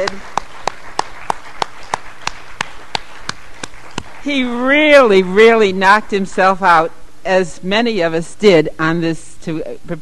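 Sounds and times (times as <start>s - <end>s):
speech: 0.0s - 0.4s, 4.2s - 9.9s
audience applause: 0.0s - 4.3s.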